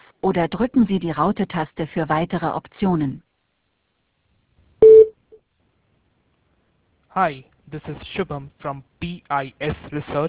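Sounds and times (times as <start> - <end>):
speech: 0.2 - 3.3, 7.2 - 10.2
electronic voicemail beep: 4.8 - 5.1.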